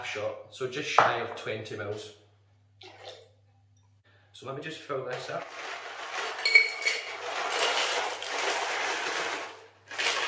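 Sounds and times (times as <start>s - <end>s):
speech: 0.1s - 2.2s, 4.4s - 5.8s
ice cubes clattering into a metal cocktail shaker: 5.2s - 10.2s.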